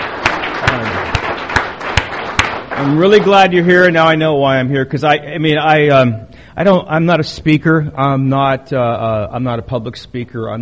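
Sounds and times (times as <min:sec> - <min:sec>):
applause welcoming first-year members at an AA meeting: 0:00.0 - 0:03.9
speech: 0:02.8 - 0:10.6.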